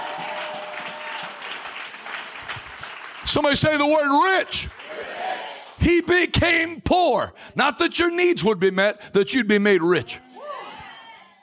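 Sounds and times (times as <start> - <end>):
audience hand clapping: 0.0 - 6.1
speech: 3.3 - 4.8, 5.8 - 10.2.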